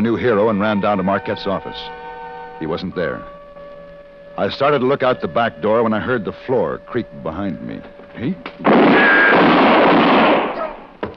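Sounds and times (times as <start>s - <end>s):
speech: 0.0s - 2.0s, 2.6s - 3.4s, 4.4s - 10.0s
gunshot: 8.6s - 10.8s.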